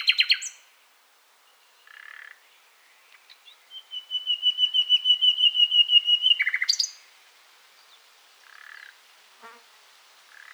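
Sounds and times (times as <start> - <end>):
common nightingale Luscinia megarhynchos song: 0.0 - 0.7, 1.4 - 7.2.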